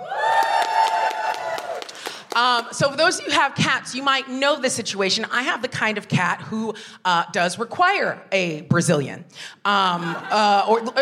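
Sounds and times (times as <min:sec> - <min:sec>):
audience applause: 0:00.0 - 0:02.4
speech: 0:02.4 - 0:10.9
laughter: 0:09.9 - 0:10.9.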